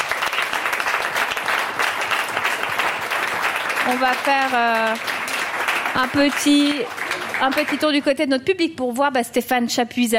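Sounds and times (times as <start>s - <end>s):
audience applause: 0.0s - 8.0s
speech: 3.9s - 5.2s, 6.0s - 10.1s.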